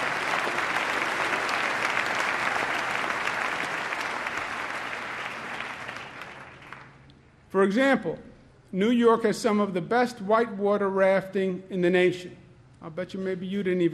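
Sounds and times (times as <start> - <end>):
crowd applause: 0.0 - 7.0
speech: 7.5 - 13.9.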